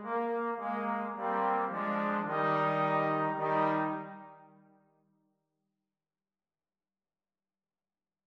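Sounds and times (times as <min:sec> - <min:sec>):
trombones playing a duet: 0:00.0 - 0:04.6.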